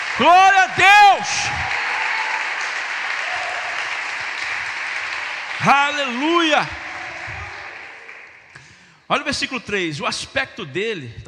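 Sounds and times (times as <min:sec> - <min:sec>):
crowd applauding: 0:00.0 - 0:08.8
speech: 0:00.2 - 0:01.8, 0:05.6 - 0:06.8, 0:09.1 - 0:11.2.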